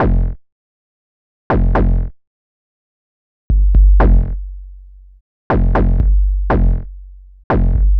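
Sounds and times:
modular electronica kick drums: 3.5s - 4.5s, 5.5s - 7.9s.

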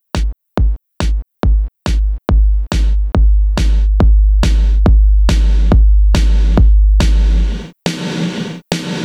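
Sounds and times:
eclectic electronica drum fill: 0.2s - 9.0s.

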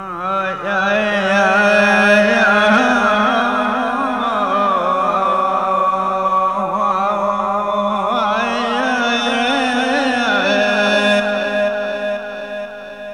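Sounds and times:
singing voice: 0.0s - 13.1s.

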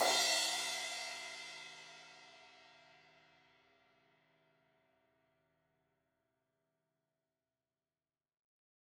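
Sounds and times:
16-inch crash cymbal hit on the edge: 0.0s - 1.4s.

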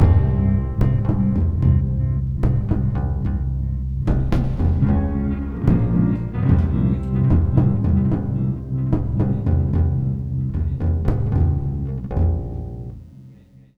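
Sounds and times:
lounge music full mix: 0.0s - 13.0s.

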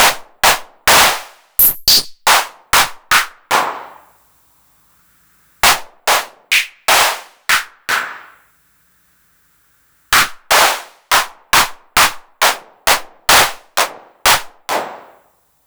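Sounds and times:
909 mod hardcore drum machine hand clap: 0.0s - 4.2s, 5.6s - 8.5s, 10.1s - 15.3s.

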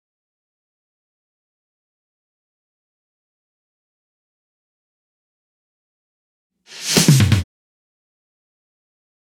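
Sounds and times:
drum fill: 7.0s - 7.4s.

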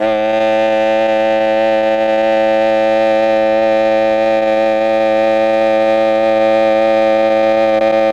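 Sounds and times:
MEL oboe sound: 0.0s - 8.1s.

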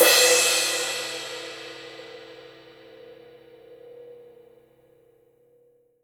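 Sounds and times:
cymbal on a real drum kit: 0.0s - 5.6s.

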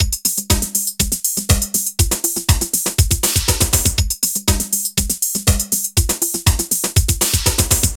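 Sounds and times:
drum loops: 0.0s - 7.9s.

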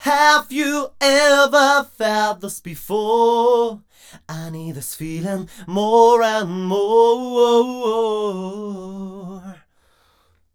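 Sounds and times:
vocals in E-flat at 128: 0.0s - 9.9s.

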